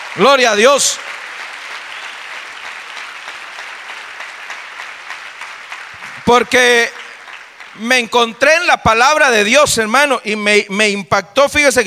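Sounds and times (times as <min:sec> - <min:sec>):
audience applauding: 0:00.0 - 0:09.2
speech: 0:00.2 - 0:01.3, 0:06.3 - 0:07.0, 0:07.8 - 0:11.8.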